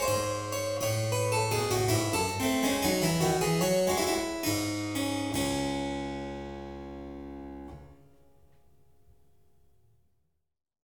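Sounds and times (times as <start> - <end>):
keyboard piece in D minor: 0.0 - 8.0.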